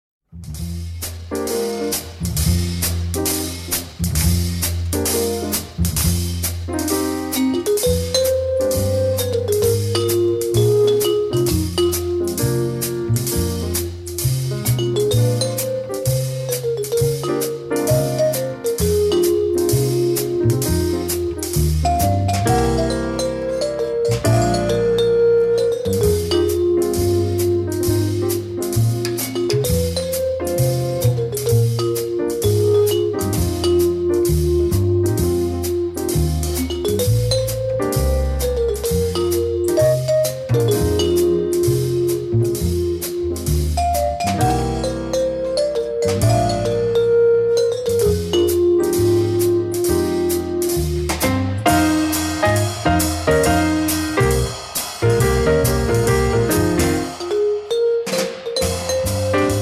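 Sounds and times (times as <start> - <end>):
jazz quartet playing: 0.4 - 59.6.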